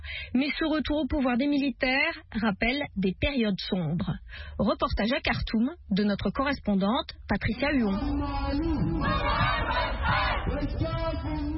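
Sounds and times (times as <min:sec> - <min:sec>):
speech: 0:00.3 - 0:11.5
protest crowd shouting in the Bari quarter of Khartoum: 0:08.8 - 0:10.8.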